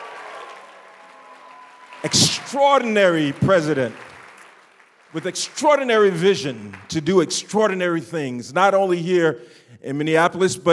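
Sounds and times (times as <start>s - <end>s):
audience applause: 0.0s - 7.1s
speech: 2.0s - 4.0s, 5.1s - 10.7s.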